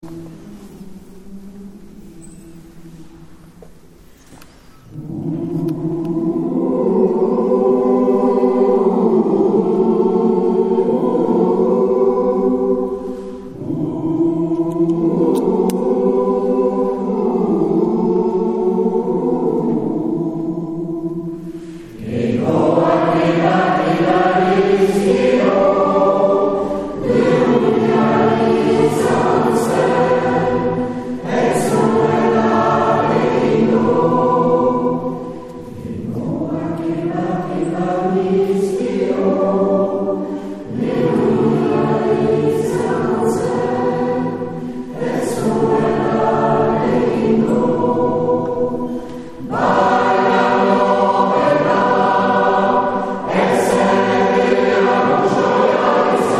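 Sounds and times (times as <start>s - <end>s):
Basque chant singing: 0.0s - 56.3s.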